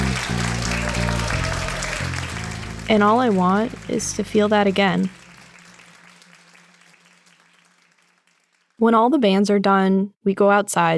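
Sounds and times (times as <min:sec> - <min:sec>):
sustained low musical tones shifting pitch: 0:00.0 - 0:06.6
audience applause: 0:00.0 - 0:08.8
speech: 0:02.9 - 0:05.2, 0:08.8 - 0:10.9.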